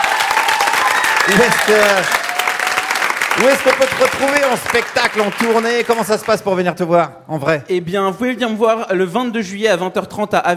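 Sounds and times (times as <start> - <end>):
audience applause: 0.0 - 6.4
speech: 1.3 - 2.2, 3.4 - 10.5.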